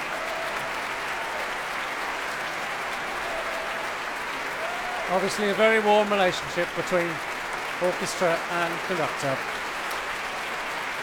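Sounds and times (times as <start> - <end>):
concert audience applauding: 0.0 - 11.0
speech: 5.1 - 9.6.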